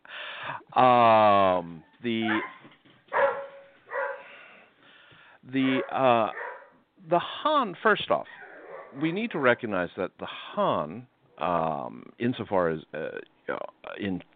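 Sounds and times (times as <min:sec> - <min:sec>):
speech: 0:00.8 - 0:02.5, 0:05.5 - 0:06.4, 0:07.1 - 0:14.3
dog whining and whimpering: 0:01.8 - 0:04.2, 0:05.6 - 0:06.8, 0:08.3 - 0:09.0
dog barking: 0:02.2 - 0:04.3, 0:05.6 - 0:06.8, 0:08.3 - 0:09.0.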